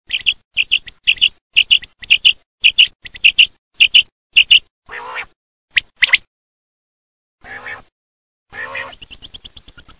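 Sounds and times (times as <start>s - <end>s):
common quail calling: 0.1s - 5.4s, 7.4s - 7.9s, 8.5s - 9.9s.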